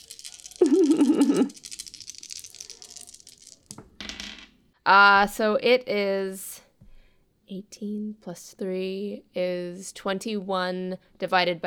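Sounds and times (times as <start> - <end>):
handful of dice clattering onto a hard surface: 0.0 - 4.6
speech: 1.4 - 1.7, 4.9 - 6.5, 7.5 - 11.6.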